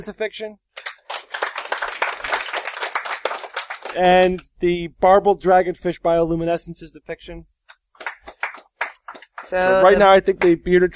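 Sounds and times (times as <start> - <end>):
speech: 0.0 - 0.7, 3.9 - 7.5, 9.5 - 10.9
studio audience applauding during a panel quiz show: 0.8 - 4.1, 8.0 - 10.6.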